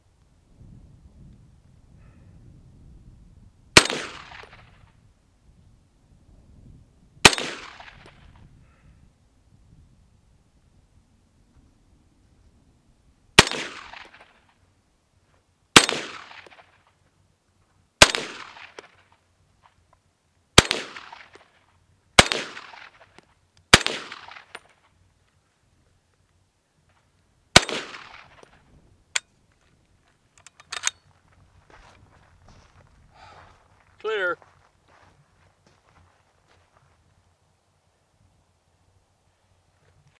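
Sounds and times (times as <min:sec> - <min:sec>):
M1 carbine gunshots: 0:03.8 - 0:04.6, 0:07.2 - 0:08.1, 0:13.4 - 0:14.4, 0:15.8 - 0:16.6, 0:18.0 - 0:19.0, 0:20.6 - 0:21.5, 0:22.2 - 0:23.1, 0:23.7 - 0:24.7, 0:27.5 - 0:28.6.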